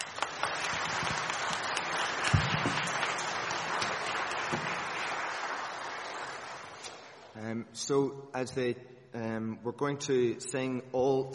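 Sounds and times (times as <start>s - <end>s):
crowd applause: 0.0s - 7.4s
speech: 7.7s - 11.3s.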